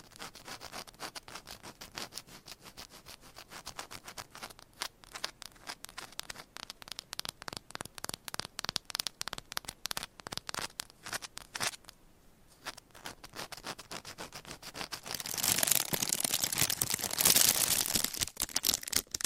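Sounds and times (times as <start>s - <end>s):
tapping and scratching with nails on items: 0.0s - 12.0s, 12.6s - 19.2s.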